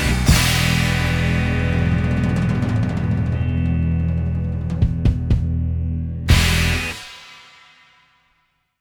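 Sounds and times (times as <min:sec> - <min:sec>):
drums playing: 0:00.0 - 0:05.7, 0:06.3 - 0:07.7.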